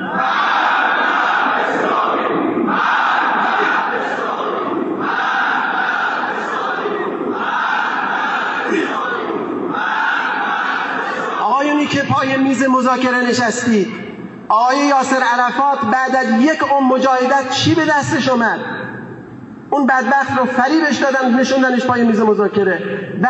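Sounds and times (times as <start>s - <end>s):
crowd chanting a political slogan: 0.0s - 12.2s
speech: 12.2s - 18.8s, 19.7s - 23.2s.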